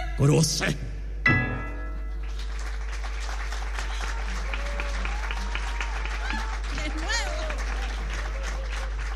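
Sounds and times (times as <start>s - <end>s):
speech: 0.2s - 0.9s
audience applause: 2.1s - 9.1s.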